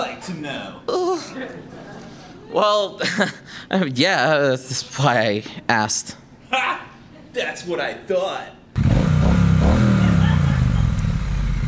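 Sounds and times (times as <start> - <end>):
speech: 0.2 - 9.9
laughter: 1.1 - 3.6, 9.8 - 11.2
motorcycle engine revving: 8.8 - 11.6.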